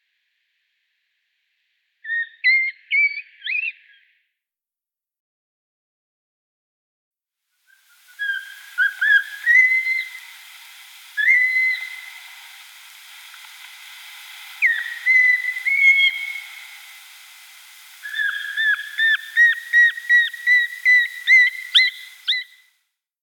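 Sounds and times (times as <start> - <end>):
Eurasian pygmy owl song in Luxembourg: 7.8 - 22.6.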